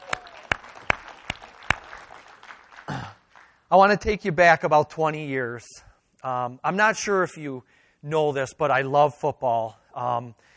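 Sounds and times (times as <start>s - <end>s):
church audience applause: 0.0s - 3.6s
speech: 3.7s - 10.5s.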